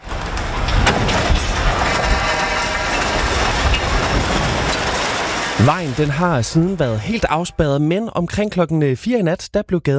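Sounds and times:
long scaffolding collapsing onto a street: 0.0s - 7.3s
speech: 5.6s - 9.9s.

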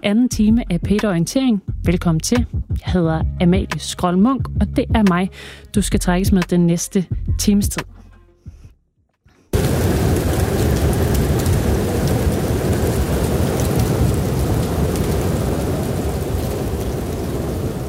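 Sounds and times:
speech: 0.0s - 8.0s
winter snowstorm wind roaring: 9.6s - 17.8s.

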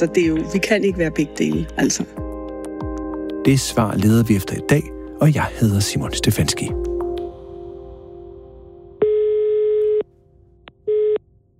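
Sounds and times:
speech: 0.0s - 2.2s, 3.4s - 6.9s
telephone line tone on a call to the Danish tax authority: 9.0s - 10.1s, 10.7s - 11.3s.

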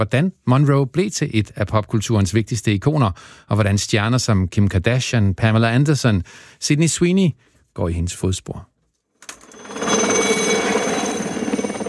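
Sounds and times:
speech: 0.0s - 8.7s
helicopter rotor chopping: 9.3s - 11.8s.

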